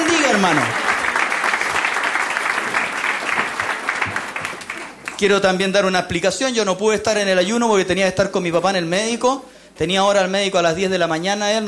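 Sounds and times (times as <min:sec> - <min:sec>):
audience applauding: 0:00.0 - 0:05.3
speech: 0:00.3 - 0:00.9, 0:05.2 - 0:11.6.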